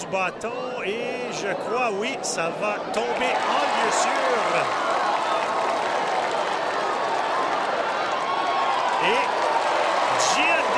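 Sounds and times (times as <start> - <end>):
speech: 0.1 - 4.9
baseball stadium crowd reacting appreciatively: 3.0 - 10.7.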